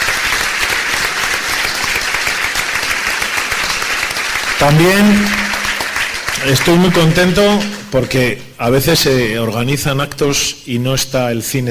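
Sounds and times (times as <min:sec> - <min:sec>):
audience applause: 0:00.0 - 0:08.3
speech: 0:04.6 - 0:05.4, 0:06.4 - 0:11.6.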